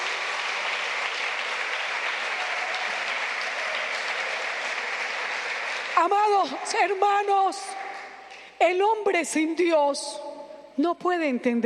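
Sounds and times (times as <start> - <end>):
audience applause: 0.0 - 6.5
speech: 6.0 - 7.9, 8.6 - 11.6.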